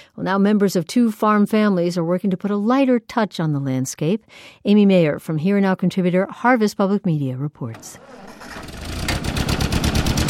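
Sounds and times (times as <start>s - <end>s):
speech: 0.2s - 8.7s
1947 Ford tractor engine running: 8.0s - 10.2s.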